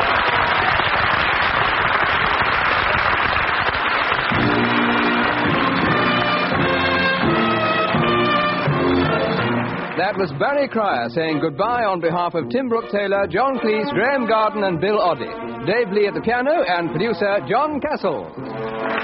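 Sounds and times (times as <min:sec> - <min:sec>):
audience round of applause: 0:00.0 - 0:11.0, 0:18.5 - 0:19.0
speech: 0:10.2 - 0:18.4.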